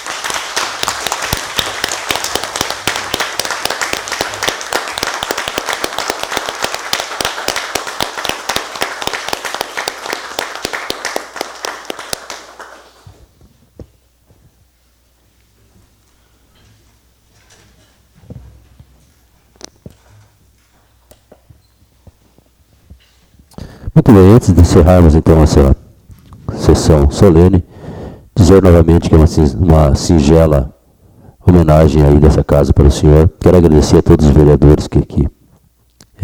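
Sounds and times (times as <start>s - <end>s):
audience applause: 0.0s - 13.2s
speech: 24.2s - 25.8s, 26.7s - 27.7s, 28.5s - 30.7s, 31.7s - 35.4s.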